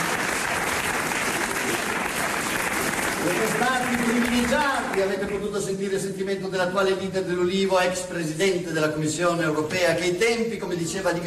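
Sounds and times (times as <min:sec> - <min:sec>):
audience applause: 0:00.0 - 0:05.4
speech: 0:03.4 - 0:11.2.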